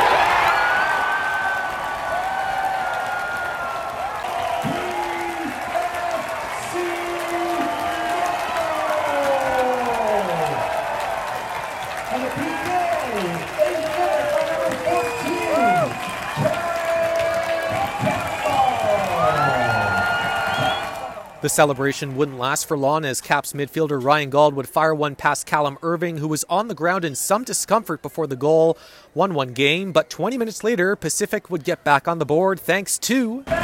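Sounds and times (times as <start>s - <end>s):
stadium crowd cheering after a goal: 0.0s - 24.2s, 33.4s - 33.6s
speech: 21.5s - 33.6s.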